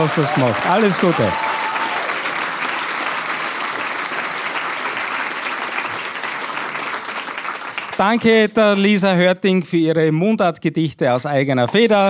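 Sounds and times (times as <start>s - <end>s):
speech: 0.0s - 1.5s, 8.0s - 12.0s
applause: 0.0s - 8.9s.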